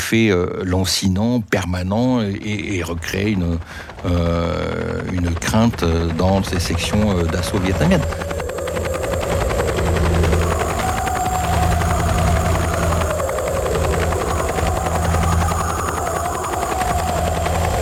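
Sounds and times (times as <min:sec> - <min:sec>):
speech: 0:00.1 - 0:08.4
helicopter flying overhead: 0:01.6 - 0:17.7.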